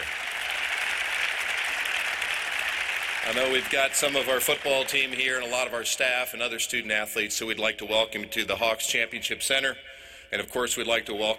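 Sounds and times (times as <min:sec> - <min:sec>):
audience applause in press room: 0:00.0 - 0:06.0
speech: 0:03.3 - 0:11.3.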